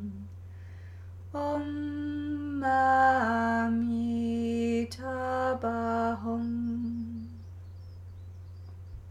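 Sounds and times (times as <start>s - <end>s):
chant: 1.4s - 7.4s.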